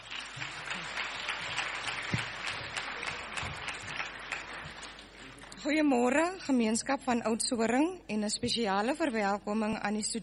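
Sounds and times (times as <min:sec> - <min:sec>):
audience clapping: 0:00.0 - 0:05.7
speech: 0:05.6 - 0:10.2.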